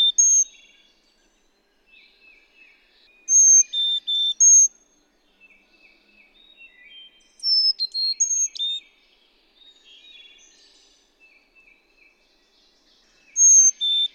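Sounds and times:
Carolina chickadee calling: 0.0s - 0.5s, 3.3s - 4.7s, 13.4s - 14.1s.

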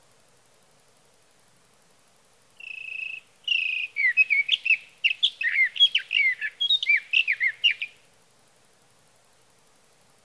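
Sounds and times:
sage thrasher singing: 2.6s - 8.0s.

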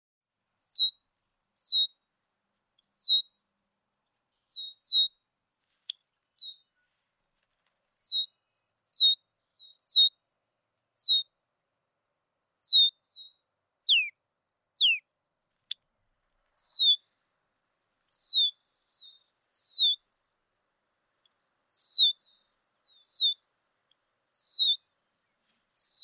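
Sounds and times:
red-winged blackbird calling with whistles and clicks: 0.6s - 0.9s, 1.6s - 1.9s, 2.9s - 3.2s, 4.4s - 5.1s, 6.3s - 6.6s, 8.0s - 8.3s, 8.9s - 10.1s, 11.0s - 11.2s, 12.6s - 13.3s, 13.9s - 14.1s, 14.8s - 15.0s, 16.6s - 17.0s, 18.1s - 20.0s, 21.7s - 23.4s, 24.4s - 24.8s, 25.8s - 26.0s.

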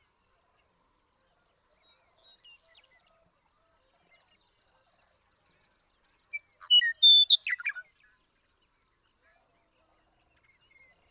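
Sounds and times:
western meadowlark whistled song: 6.7s - 7.8s.

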